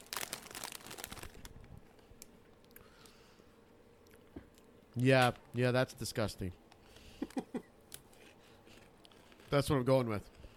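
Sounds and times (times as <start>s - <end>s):
cheese puff packaging crinkling: 0.0s - 1.7s, 8.7s - 9.7s
speech: 5.0s - 6.6s, 9.5s - 10.4s.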